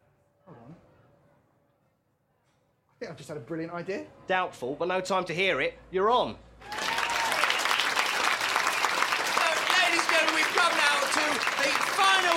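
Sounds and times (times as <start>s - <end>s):
speech: 3.0s - 6.8s
audience applause: 6.6s - 12.3s.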